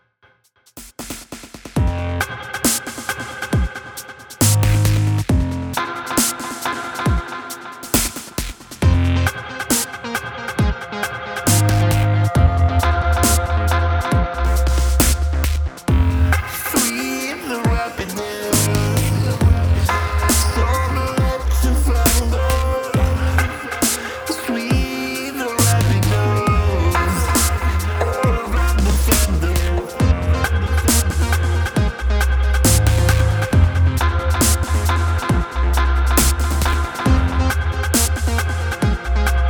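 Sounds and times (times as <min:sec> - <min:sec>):
dub music: 0:01.8 - 0:39.4.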